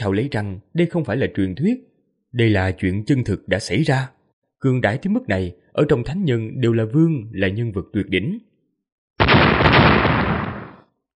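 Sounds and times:
speech: 0.0 - 8.5
explosion sound effect: 9.2 - 10.9.

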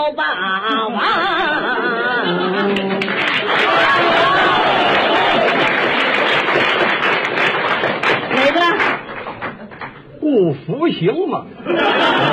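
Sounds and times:
speech: 0.0 - 2.7, 10.6 - 12.3
laughter: 0.7 - 6.6, 11.6 - 12.3
audience applause: 2.7 - 10.0.

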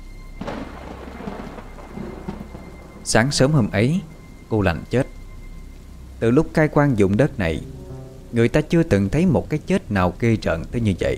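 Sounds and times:
heavy rain pouring down: 0.4 - 8.8
speech: 3.1 - 5.1, 6.2 - 11.1.

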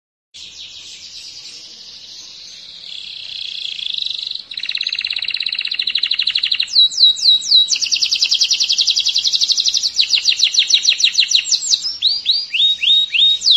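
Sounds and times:
canary singing buzzy trills: 0.4 - 13.5.

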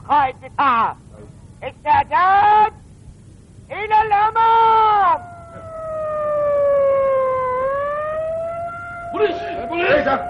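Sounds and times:
speech: 0.1 - 1.0, 1.6 - 2.7, 3.7 - 5.3, 9.2 - 10.2
police siren wailing: 4.7 - 10.2.

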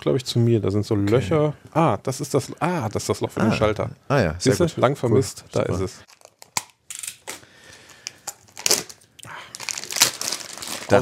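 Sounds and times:
speech: 0.0 - 6.1
plastic packaging crinkling as long green plastic cable ties are unpacked: 6.1 - 11.0.

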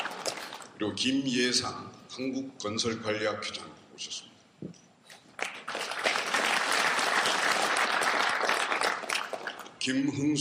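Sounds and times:
audience applause welcoming guests at a construction-industry forum: 0.0 - 0.7, 5.3 - 9.8
speech: 0.8 - 4.3, 9.8 - 10.3.

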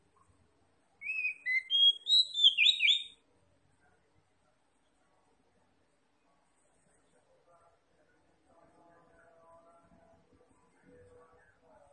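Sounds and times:
Oriental magpie-robin whistling: 1.0 - 3.2.

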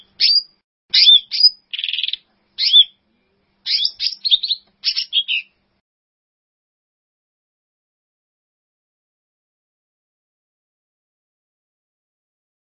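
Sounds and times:
bird song: 0.0 - 5.6.

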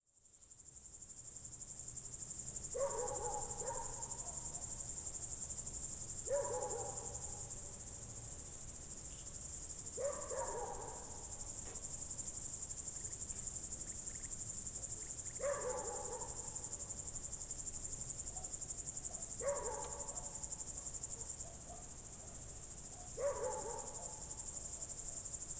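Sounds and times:
cricket chorus at night in Poland: 0.1 - 25.5.

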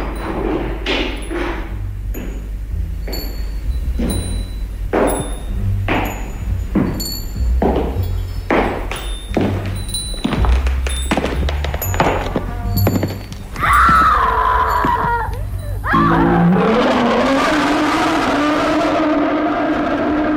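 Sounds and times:
footsteps: 0.2 - 15.9
person screaming: 13.6 - 16.6
lion roaring: 13.7 - 20.3.

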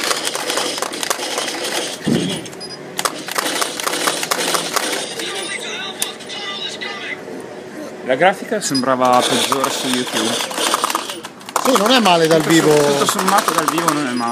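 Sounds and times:
arcade light-gun game simulated gunfire: 0.0 - 5.2, 9.2 - 14.2
arcade light-gun game electronic noise: 0.0 - 7.2, 8.7 - 14.2
speech: 8.1 - 10.7, 11.7 - 14.2.

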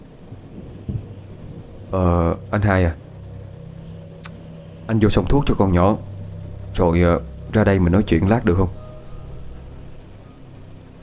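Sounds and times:
thunder: 0.0 - 2.7
rain: 0.0 - 11.0
speech: 1.9 - 3.0, 4.9 - 6.1, 6.8 - 8.8.

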